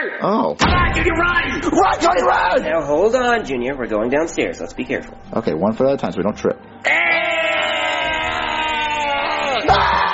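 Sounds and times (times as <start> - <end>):
speech: 0.0 - 7.4
people screaming: 6.8 - 10.1.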